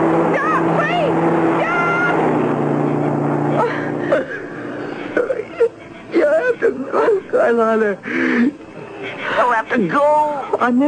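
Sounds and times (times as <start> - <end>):
car approaching on a road: 0.0 - 10.8
speech: 7.5 - 8.6, 9.4 - 10.8.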